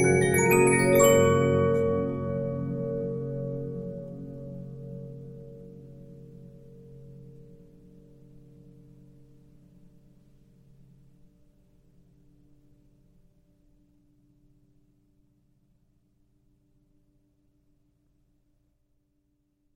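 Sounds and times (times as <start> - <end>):
Regina 15-inch disc music box: 0.0 - 4.2.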